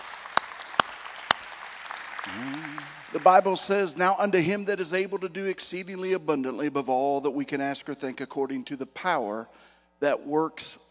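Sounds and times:
audience hand clapping: 0.0 - 3.9
speech: 2.2 - 10.8.

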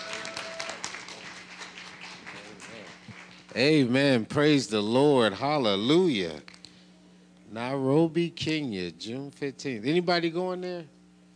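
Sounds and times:
scattered voices and cheers: 0.0 - 0.9
audience clapping: 0.0 - 3.9
speech: 3.6 - 6.5, 7.5 - 11.0.

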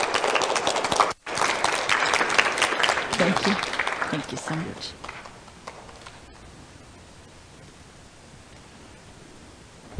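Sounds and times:
audience applause welcoming a guest onto a stage: 0.0 - 6.1
speech: 4.1 - 5.1.

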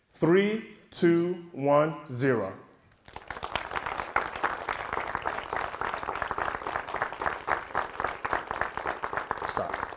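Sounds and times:
speech: 0.2 - 2.6
group of people clapping into unison: 2.9 - 9.9.

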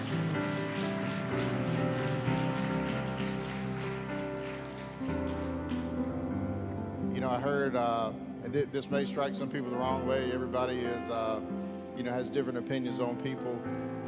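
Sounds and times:
audience hand clapping: 0.0 - 6.2
speech: 7.3 - 14.0.

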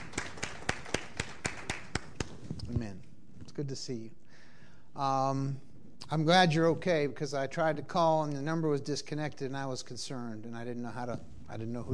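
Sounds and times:
audience clapping in unison: 0.0 - 2.6
speech: 3.6 - 4.2, 5.0 - 11.9.

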